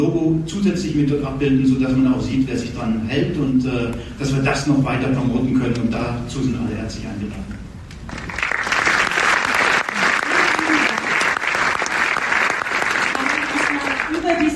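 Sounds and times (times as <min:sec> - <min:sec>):
speech: 0:00.0 - 0:07.6
audience applause: 0:08.1 - 0:14.4.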